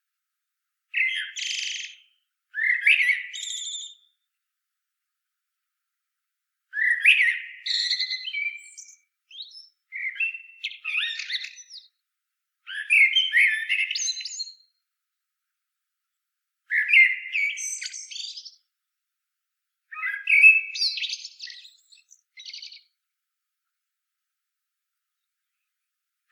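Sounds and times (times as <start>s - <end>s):
common blackbird singing: 1.0s - 4.1s, 6.8s - 11.9s, 12.7s - 14.7s, 16.7s - 18.6s, 19.9s - 22.9s.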